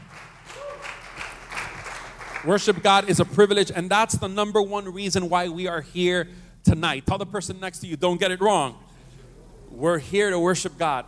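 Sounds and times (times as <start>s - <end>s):
crowd applauding: 0.0s - 3.2s
speech: 2.4s - 8.9s, 9.7s - 11.0s.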